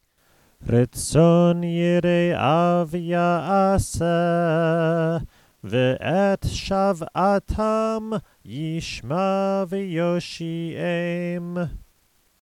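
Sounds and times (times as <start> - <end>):
prayer chanting: 0.6 - 11.8.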